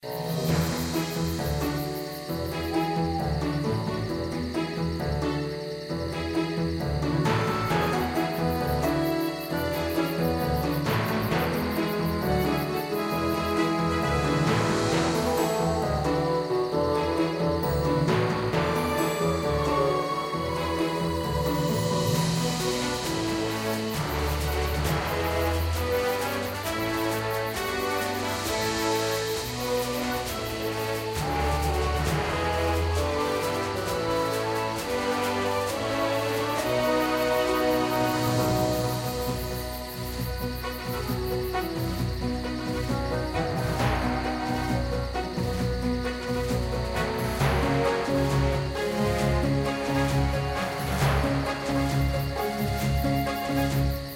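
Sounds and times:
epic night forest music: 0:00.0 - 0:54.1.

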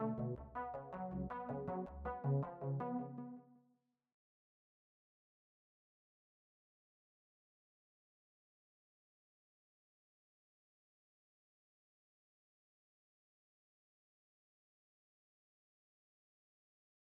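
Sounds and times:
bass: 0:00.0 - 0:03.0.

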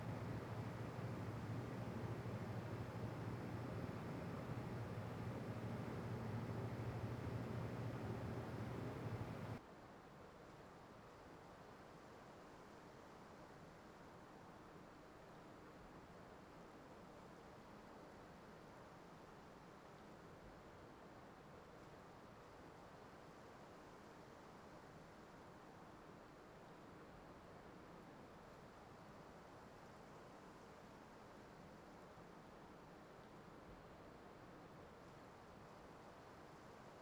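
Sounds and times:
indoor ambience: 0:00.0 - 0:09.6.

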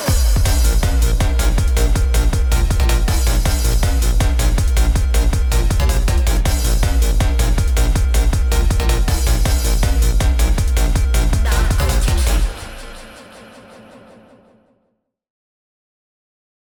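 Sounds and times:
hardbass music: 0:00.0 - 0:13.1.

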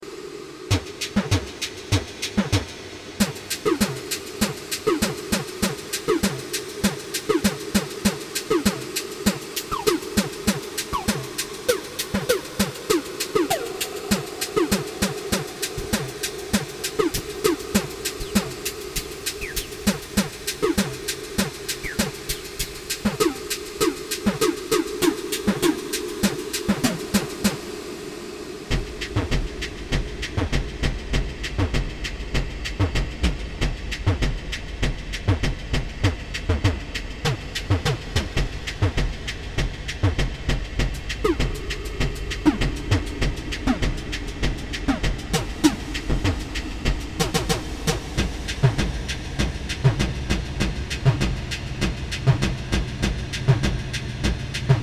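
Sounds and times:
drum machine: 0:00.7 - 0:27.6, 0:28.7 - 0:54.8.

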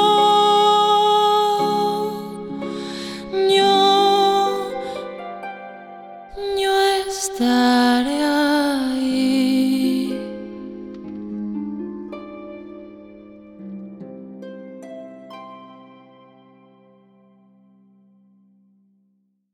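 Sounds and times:
voice: 0:00.0 - 0:02.4, 0:03.2 - 0:05.0, 0:06.4 - 0:10.4
harp: 0:00.0 - 0:18.3.

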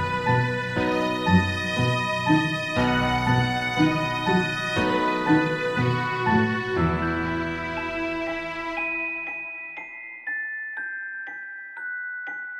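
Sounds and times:
suspense music: 0:00.0 - 0:08.8.

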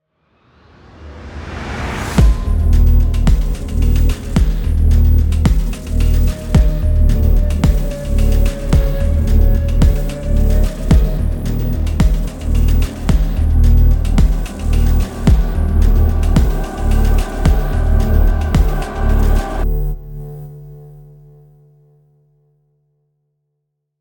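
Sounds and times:
hell swamp ambient music: 0:02.2 - 0:20.8.

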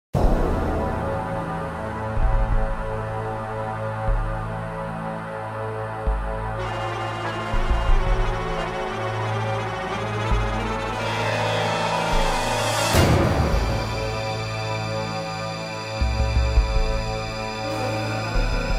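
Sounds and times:
underground tunnel ambience: 0:00.2 - 0:18.7.

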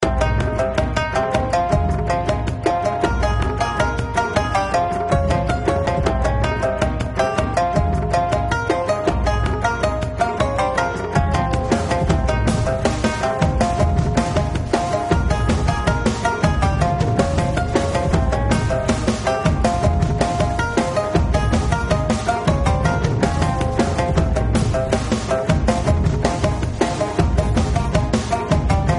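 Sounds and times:
boss fight background music: 0:00.0 - 0:28.9.

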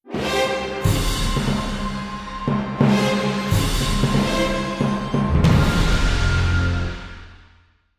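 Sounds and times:
vampire turn musical sting: 0:00.5 - 0:07.5.

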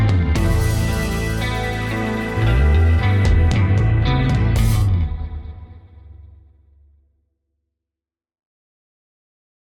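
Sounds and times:
space rock: 0:00.0 - 0:06.8.

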